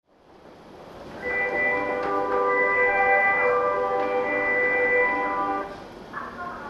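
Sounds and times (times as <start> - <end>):
melody: 1.2 - 5.8.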